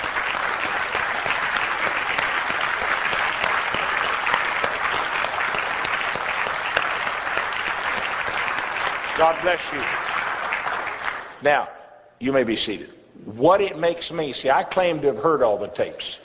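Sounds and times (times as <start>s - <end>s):
audience applause: 0.0s - 11.4s
speech: 9.2s - 10.0s, 11.4s - 16.2s.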